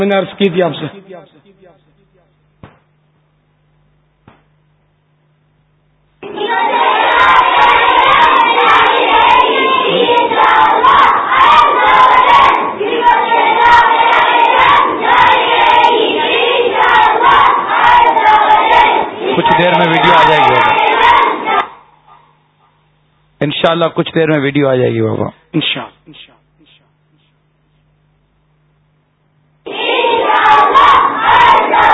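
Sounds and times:
speech: 0:00.0 - 0:01.8, 0:19.5 - 0:20.8, 0:23.4 - 0:26.4
large crowd at a religious gathering chanting slogans in unison: 0:06.2 - 0:22.0, 0:29.7 - 0:31.9.

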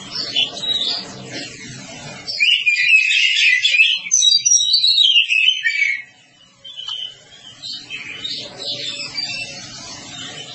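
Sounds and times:
Oriental magpie-robin whistles: 0:02.3 - 0:10.5.

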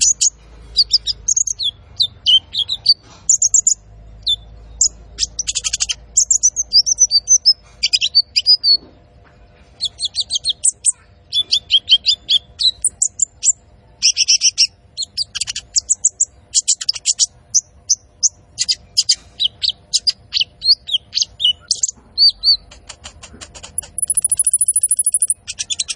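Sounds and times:
Van Hasselt's sunbird singing vigorously: 0:00.0 - 0:08.9, 0:09.8 - 0:25.9.

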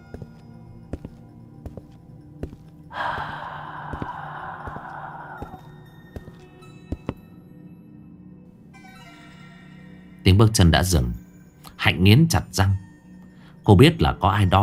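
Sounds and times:
soft breath: 0:02.9 - 0:06.4
low hum: 0:03.0 - 0:06.4
speech: 0:10.4 - 0:11.2, 0:11.8 - 0:12.9, 0:13.7 - 0:14.6.

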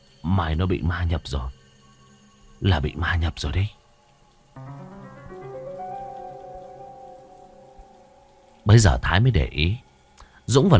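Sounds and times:
low sustained musical tones: 0:00.0 - 0:10.2
speech: 0:00.2 - 0:01.6, 0:02.6 - 0:03.8, 0:08.7 - 0:09.8, 0:10.5 - 0:10.7
steady cold rain falling: 0:04.6 - 0:09.8.

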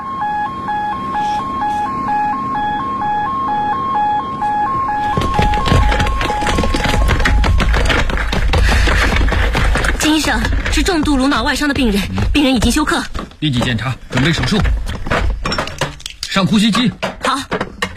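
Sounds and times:
ambulance siren wailing hi-lo: 0:00.0 - 0:08.4
loud clattering commotion: 0:05.0 - 0:17.9
speech: 0:10.3 - 0:14.8, 0:16.4 - 0:17.1.

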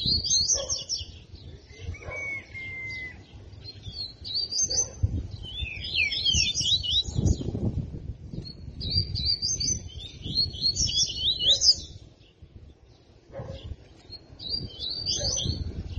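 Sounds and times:
double-collared seedeater twittering song: 0:00.0 - 0:15.9.

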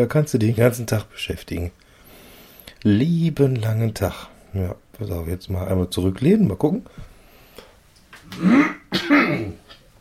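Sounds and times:
speech: 0:00.0 - 0:01.8, 0:02.8 - 0:07.1, 0:08.3 - 0:09.7
person clearing throat: 0:08.3 - 0:09.6.

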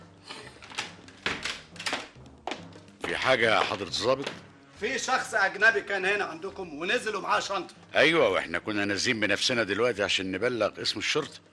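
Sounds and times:
door opening in a radio drama: 0:00.6 - 0:02.2
speech: 0:03.1 - 0:11.5.

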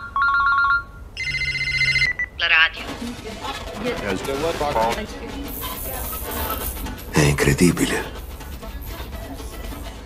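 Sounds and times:
electronic telephone ringing: 0:00.0 - 0:02.7
speech: 0:02.4 - 0:05.5, 0:07.2 - 0:08.2.

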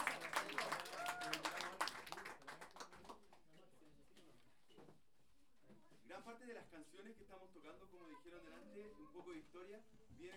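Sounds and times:
audience applause: 0:00.0 - 0:03.1
speech: 0:06.4 - 0:10.3.

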